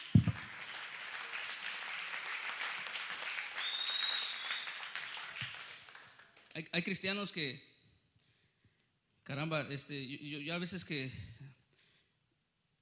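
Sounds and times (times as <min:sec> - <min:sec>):
audience applause: 0:00.0 - 0:06.5
speech: 0:06.6 - 0:07.7, 0:09.3 - 0:11.3.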